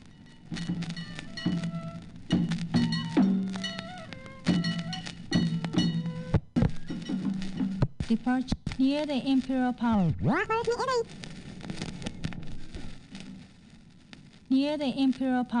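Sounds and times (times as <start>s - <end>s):
bells: 0.0s - 6.3s
drums of many sizes: 0.0s - 9.2s, 9.8s - 13.8s
flutes playing festival music: 0.4s - 6.9s
speech: 8.1s - 11.2s, 14.6s - 15.5s.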